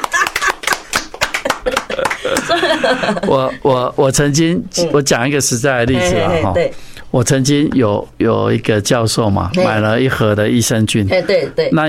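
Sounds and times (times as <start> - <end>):
laughter: 0.0 - 0.7, 1.4 - 3.6
hand claps: 0.0 - 2.6
speech: 1.6 - 11.8.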